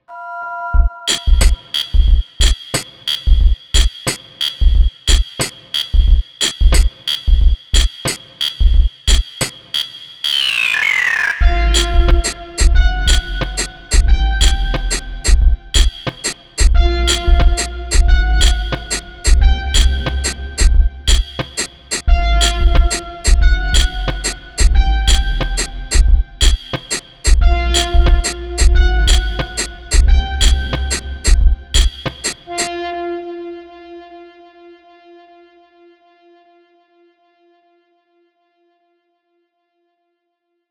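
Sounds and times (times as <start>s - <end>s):
music beat: 0.8s - 10.4s, 11.4s - 32.7s.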